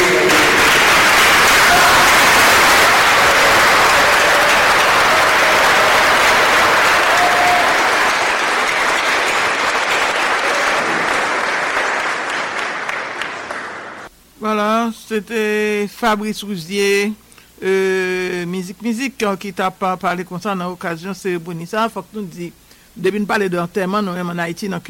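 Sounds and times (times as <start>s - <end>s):
standing ovation at a gathering in Haiti: 0.0s - 14.1s
speech: 15.1s - 24.8s.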